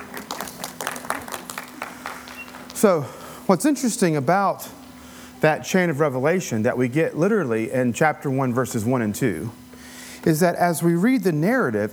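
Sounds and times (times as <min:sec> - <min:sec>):
audience applause: 0:00.0 - 0:02.8
speech: 0:02.8 - 0:04.8, 0:05.4 - 0:09.6, 0:10.2 - 0:11.9.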